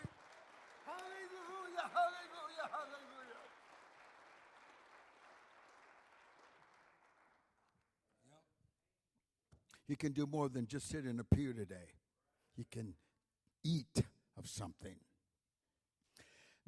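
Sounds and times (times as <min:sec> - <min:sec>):
audience clapping hands: 0:00.0 - 0:08.2
speech: 0:09.9 - 0:12.0, 0:12.6 - 0:13.0, 0:13.6 - 0:15.1.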